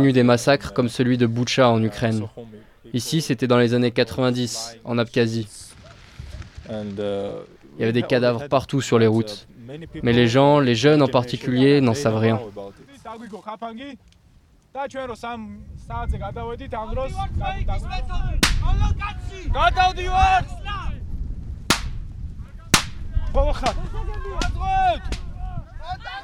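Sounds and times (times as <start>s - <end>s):
speech: 0.0s - 5.6s, 6.7s - 14.2s, 14.8s - 21.0s, 23.3s - 25.2s
firecrackers exploding during ambush drill: 18.4s - 18.8s, 21.7s - 22.2s, 22.8s - 23.2s.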